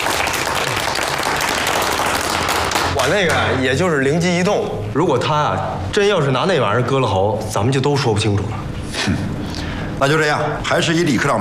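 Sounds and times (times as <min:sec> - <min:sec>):
group applause: 0:00.0 - 0:03.1
speech: 0:03.0 - 0:09.3, 0:10.0 - 0:11.3.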